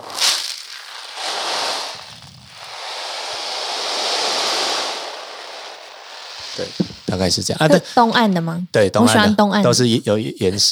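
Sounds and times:
beans rolling inside handmade wave drum imitating ocean surf: 0.0s - 7.4s
speech: 6.6s - 10.6s.

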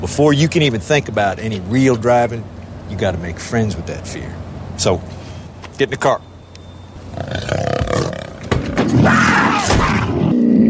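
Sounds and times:
speech: 0.0s - 5.2s, 5.8s - 6.3s
live cougar roaring inside a car: 7.1s - 10.6s.

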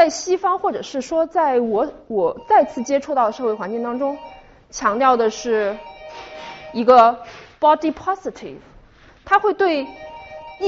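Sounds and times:
speech: 0.0s - 8.7s, 9.3s - 10.6s
doorbell ringing: 2.4s - 4.5s, 5.8s - 6.9s, 9.8s - 10.6s.

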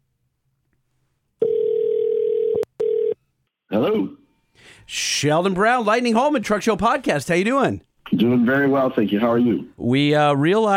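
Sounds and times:
telephone dial tone: 1.4s - 3.2s
speech: 3.7s - 10.7s.

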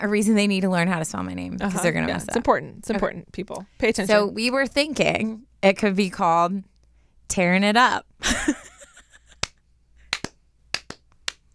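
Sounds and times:
speech: 0.0s - 6.7s, 7.3s - 8.6s
slow hand clap: 9.4s - 11.5s.

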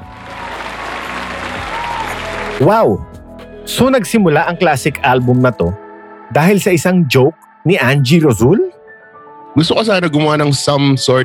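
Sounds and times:
canned applause sound effect: 0.0s - 3.0s
speech: 2.6s - 8.7s, 9.6s - 11.2s.

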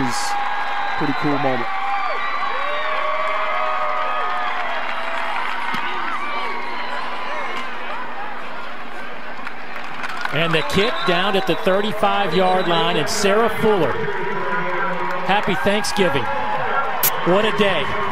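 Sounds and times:
stadium crowd cheering: 0.0s - 18.1s
speech: 1.0s - 1.8s, 10.4s - 14.3s, 15.3s - 16.4s, 17.2s - 18.0s.

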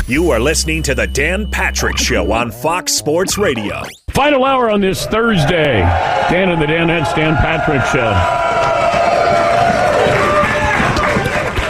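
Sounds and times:
speech: 0.1s - 9.0s
outdoor morning crowd cheering at the Fontainebleau Hotel in Las Vegas: 5.5s - 11.6s.

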